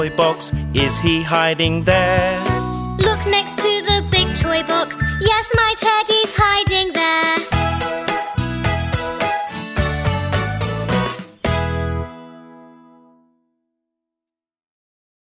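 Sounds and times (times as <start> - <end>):
karaoke singing: 0.0 - 11.7.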